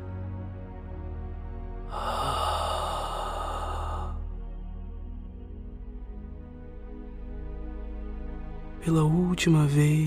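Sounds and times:
long airy breath during a guided breathing exercise: 0:01.9 - 0:04.3
speech: 0:08.8 - 0:10.0.

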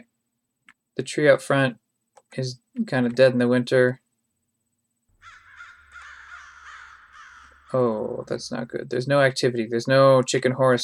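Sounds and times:
speech: 0:01.0 - 0:04.0, 0:07.7 - 0:10.8
Game Boy video game bird cawing: 0:05.2 - 0:08.4.

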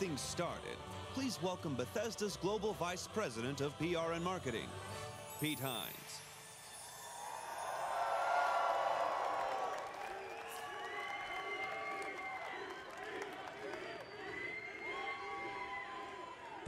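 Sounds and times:
speech: 0:00.0 - 0:06.2
audience applause: 0:07.6 - 0:16.6.

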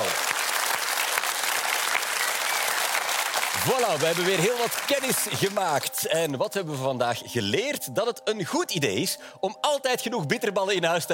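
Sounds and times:
audience applause: 0:00.0 - 0:06.0
speech: 0:03.6 - 0:11.1.

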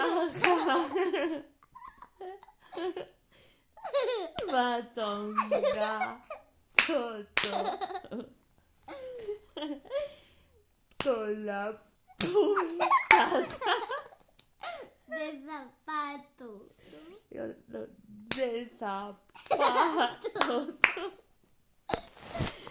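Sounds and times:
giggling and laughter: 0:00.0 - 0:03.2, 0:03.8 - 0:06.4, 0:07.5 - 0:10.1, 0:12.2 - 0:14.9, 0:19.4 - 0:21.2
hand-clapping game with a child: 0:00.4 - 0:00.8, 0:06.8 - 0:07.8, 0:12.2 - 0:12.5, 0:13.1 - 0:13.6, 0:20.4 - 0:21.1
speech: 0:04.5 - 0:10.2, 0:11.0 - 0:14.1, 0:15.1 - 0:21.2.

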